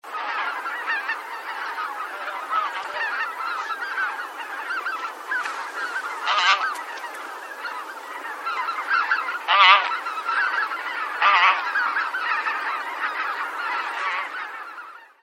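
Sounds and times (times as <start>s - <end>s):
bean geese flock honking: 0.0s - 15.2s.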